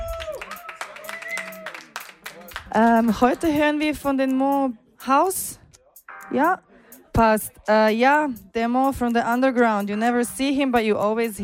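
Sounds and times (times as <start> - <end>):
audience applause: 0.0 - 2.7
speech: 2.8 - 5.6, 6.3 - 11.4.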